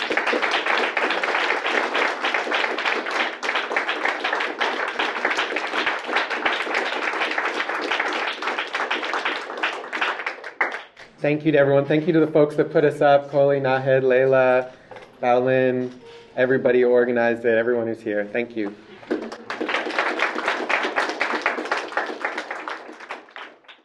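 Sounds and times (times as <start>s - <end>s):
audience applause: 0.0s - 11.1s, 18.8s - 23.8s
speech: 11.2s - 18.8s.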